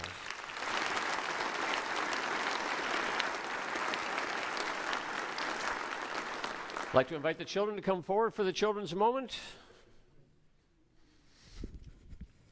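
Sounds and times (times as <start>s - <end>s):
applause: 0.0s - 7.3s
speech: 6.9s - 9.6s.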